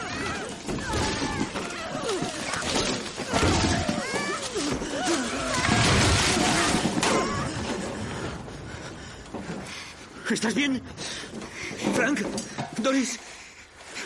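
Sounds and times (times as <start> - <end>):
shouting voices: 0.0 - 7.5
hot-air balloon crashing into treetops: 0.0 - 8.4
speech: 10.3 - 11.2, 12.0 - 13.2.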